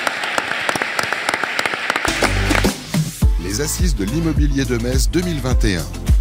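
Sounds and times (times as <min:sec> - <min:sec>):
audience applause: 0:00.0 - 0:03.2
speech: 0:03.6 - 0:06.1.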